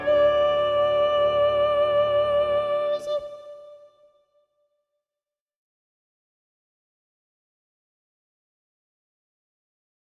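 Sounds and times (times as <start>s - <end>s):
soprano singing: 0.0s - 4.2s.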